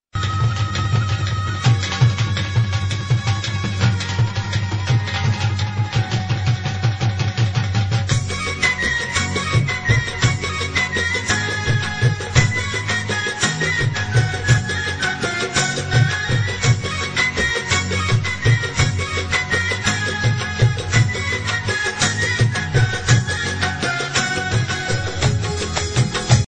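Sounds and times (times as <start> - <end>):
dhol drumming: 0.2 - 26.4.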